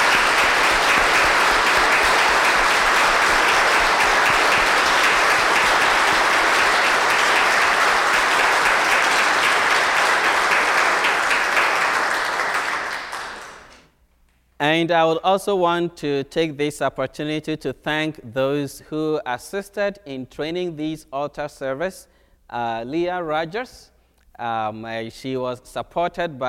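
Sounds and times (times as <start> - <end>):
audience applause: 0.0 - 13.8
speech: 14.8 - 26.4.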